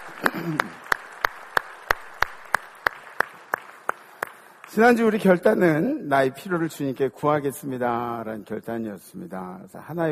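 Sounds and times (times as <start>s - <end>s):
audience clapping in steady rhythm: 0.0s - 6.0s
speech: 0.5s - 0.8s, 4.8s - 10.1s.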